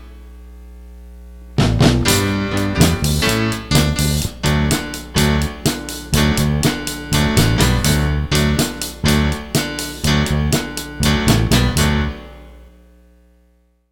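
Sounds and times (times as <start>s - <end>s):
instrumental music: 1.6s - 12.6s.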